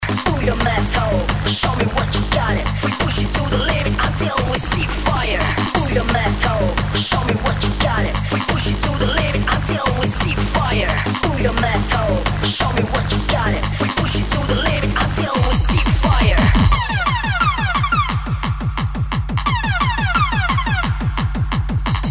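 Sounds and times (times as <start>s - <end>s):
bass drops: 0.0s - 22.0s.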